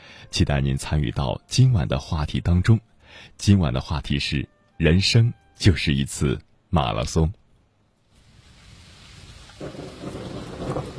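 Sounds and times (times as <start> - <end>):
speech: 0.3 - 7.4, 9.6 - 10.0
rain: 8.0 - 10.9
thunder rumbling: 8.9 - 10.9.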